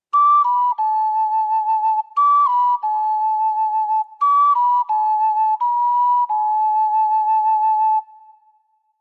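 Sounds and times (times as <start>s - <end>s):
ocarina melody: 0.1s - 8.8s.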